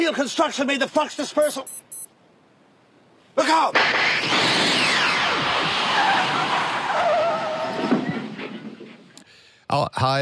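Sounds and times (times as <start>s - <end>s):
speech: 0.0s - 1.8s, 3.4s - 4.2s, 9.7s - 10.2s
DeLorean car tires screeching: 3.8s - 9.2s.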